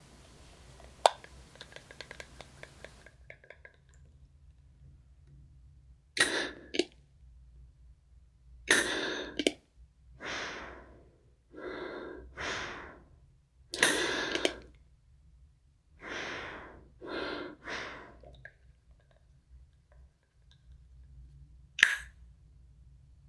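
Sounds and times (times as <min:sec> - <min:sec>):
inhaler puff: 0:00.0 - 0:03.1, 0:06.2 - 0:06.8, 0:08.7 - 0:09.5, 0:10.2 - 0:11.0, 0:11.6 - 0:13.0, 0:13.8 - 0:14.7, 0:16.0 - 0:18.2, 0:21.8 - 0:22.1.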